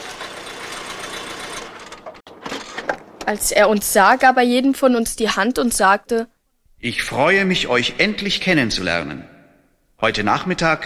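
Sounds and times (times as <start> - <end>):
car engine running while pulling up: 0.0 - 2.2
speech: 3.2 - 9.3, 10.0 - 10.8.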